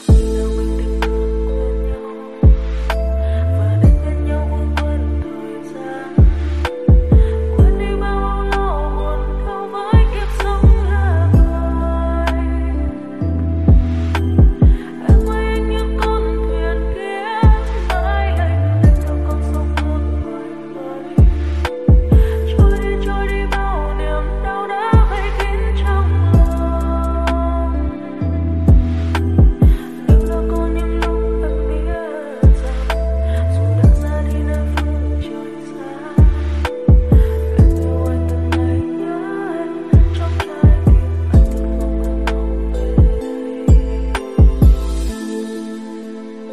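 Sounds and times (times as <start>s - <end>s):
lo-fi version ringtone music: 0.0s - 46.5s.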